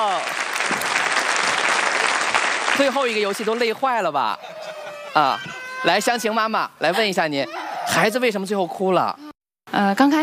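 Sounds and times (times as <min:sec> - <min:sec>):
parents and children applauding after a kids' game competition: 0:00.0 - 0:03.8
speech: 0:02.8 - 0:04.5, 0:05.2 - 0:10.2
laughter: 0:03.4 - 0:05.8.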